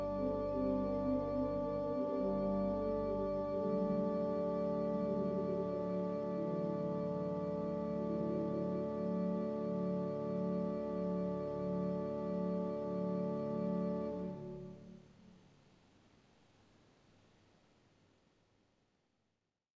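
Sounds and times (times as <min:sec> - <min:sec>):
pipe organ playing with nazard oboe and kopfregal stops: 0:00.0 - 0:15.0.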